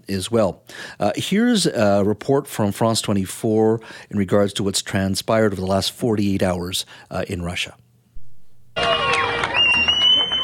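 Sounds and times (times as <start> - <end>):
speech: 0.1 - 7.8
crowd cheering and applauding: 8.7 - 10.4
high whistle-like tones: 9.4 - 10.4.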